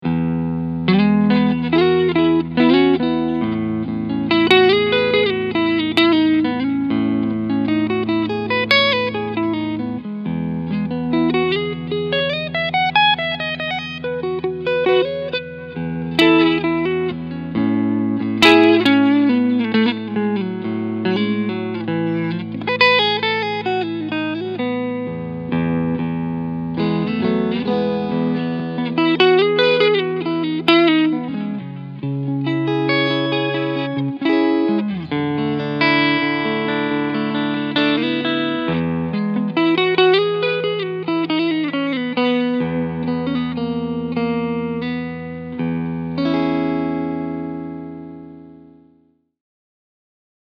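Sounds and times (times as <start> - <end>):
clean electric guitar on front pickup: 0.0 - 49.2.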